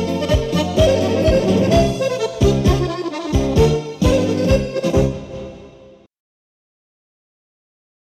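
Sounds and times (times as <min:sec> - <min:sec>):
instrumental polka: 0:00.0 - 0:05.8.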